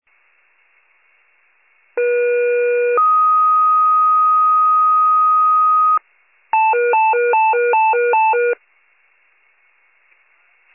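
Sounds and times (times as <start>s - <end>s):
fire pager alert: 2.0s - 6.0s, 6.6s - 8.6s.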